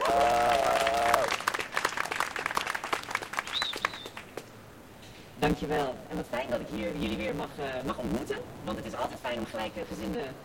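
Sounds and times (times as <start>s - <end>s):
audience applause: 0.0s - 4.4s
speech: 5.5s - 10.4s.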